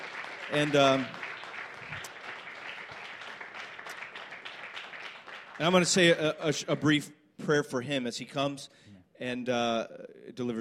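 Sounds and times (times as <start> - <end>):
audience applause: 0.0 - 6.1
speech: 0.5 - 1.2, 5.6 - 10.6.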